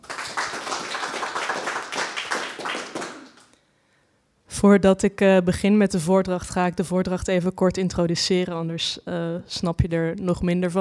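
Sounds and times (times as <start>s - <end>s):
small audience applause: 0.0s - 3.5s
speech: 4.6s - 10.8s.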